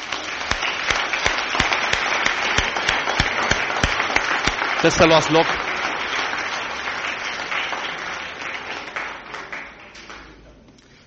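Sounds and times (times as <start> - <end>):
audience applauding: 0.0 - 10.6
speech: 4.8 - 5.6.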